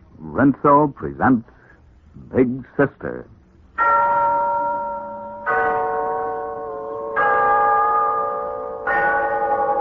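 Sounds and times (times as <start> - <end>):
speech: 0.4 - 1.5, 2.3 - 3.3
Glen Falls Town Hall clock bell chiming: 3.8 - 9.7.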